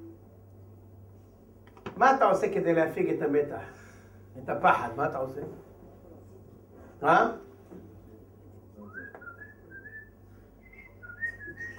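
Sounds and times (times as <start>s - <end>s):
speech: 2.0s - 3.8s, 4.4s - 5.7s, 7.0s - 7.8s
person whistling a tune: 8.9s - 11.7s.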